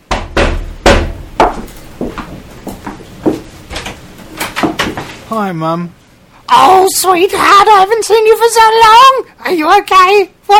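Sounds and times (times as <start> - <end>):
knock on a door: 0.0 - 2.2
speech: 5.3 - 10.5.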